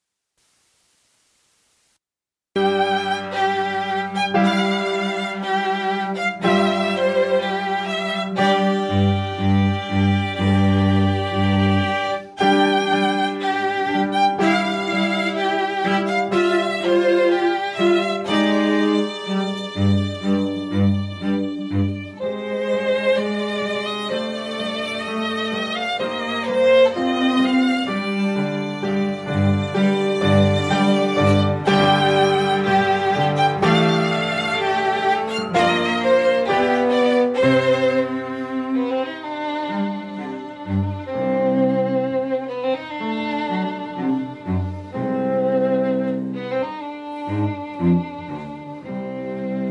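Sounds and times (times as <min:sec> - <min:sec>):
piano trio: 0:02.6 - 0:49.6.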